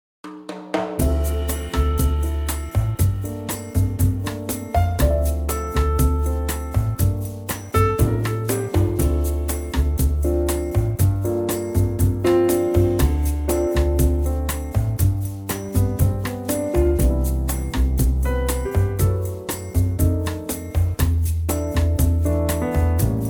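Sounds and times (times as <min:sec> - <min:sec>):
bossa nova music in C: 0:00.7 - 0:23.2.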